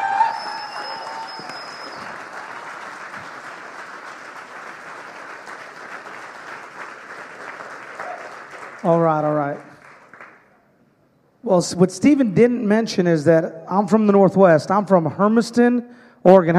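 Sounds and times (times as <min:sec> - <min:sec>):
whistle-like tone: 0:00.0 - 0:02.2
crowd applauding: 0:00.0 - 0:10.5
speech: 0:08.8 - 0:09.7, 0:11.5 - 0:16.5.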